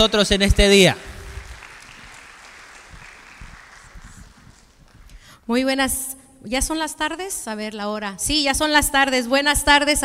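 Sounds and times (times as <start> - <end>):
speech: 0.0 - 1.1, 5.5 - 10.0
audience applause: 0.0 - 5.1.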